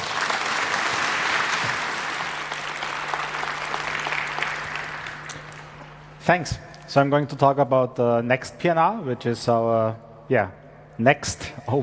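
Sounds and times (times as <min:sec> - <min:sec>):
audience applause: 0:00.0 - 0:05.8
speech: 0:06.3 - 0:11.8.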